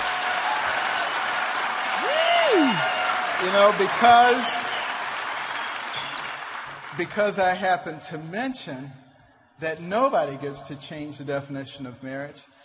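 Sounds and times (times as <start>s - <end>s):
audience cheering and applauding: 0.0s - 7.2s
speech: 3.4s - 4.6s, 7.0s - 9.0s, 9.6s - 12.5s.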